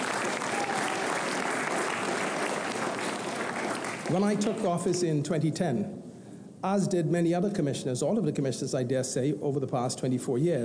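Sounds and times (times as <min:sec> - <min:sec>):
audience applause: 0:00.0 - 0:04.6
speech: 0:04.1 - 0:06.0, 0:06.6 - 0:10.6.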